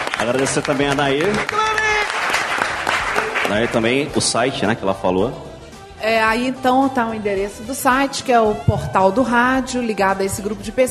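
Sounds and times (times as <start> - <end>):
audience applause: 0.0 - 4.1
speech: 0.2 - 1.6, 3.5 - 10.9.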